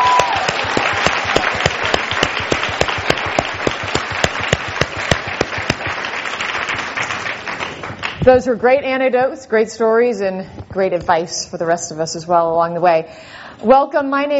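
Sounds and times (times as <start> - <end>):
audience applause at a panel event: 0.0 - 8.2
speech: 8.2 - 14.3.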